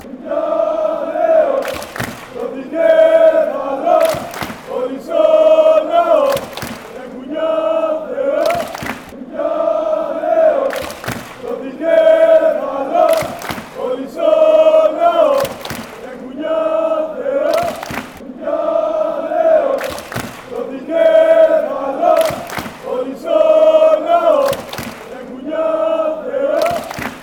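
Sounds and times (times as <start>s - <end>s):
football crowd chanting: 0.0s - 27.2s.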